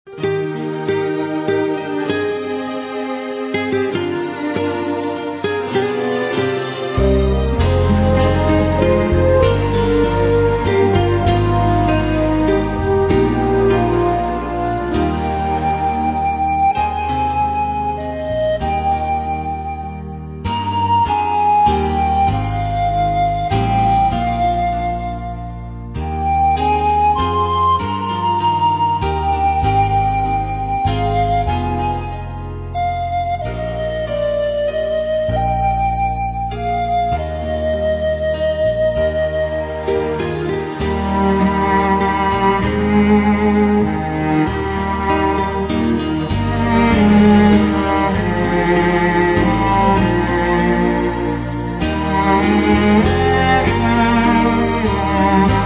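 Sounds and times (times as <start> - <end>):
instrumental hymns: 0.0 - 55.6.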